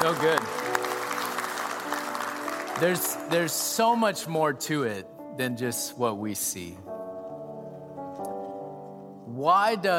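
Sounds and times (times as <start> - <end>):
speech: 0.0 - 0.6, 2.8 - 7.0, 9.4 - 9.9
crowd applauding: 0.0 - 4.3.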